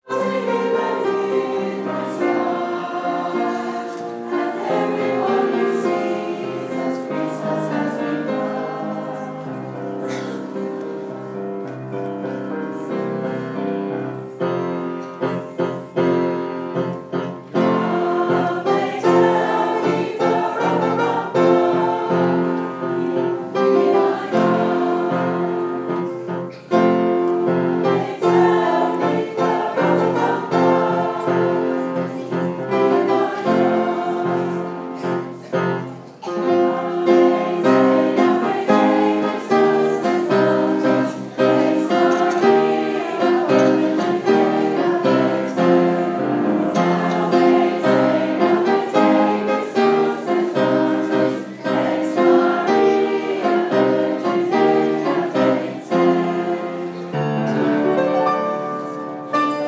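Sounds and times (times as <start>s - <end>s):
staff choir singing: 0.0s - 59.6s.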